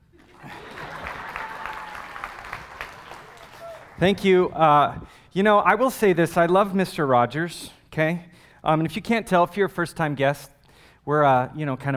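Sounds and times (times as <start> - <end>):
audience clapping: 0.2 - 4.6
speech: 4.0 - 11.9.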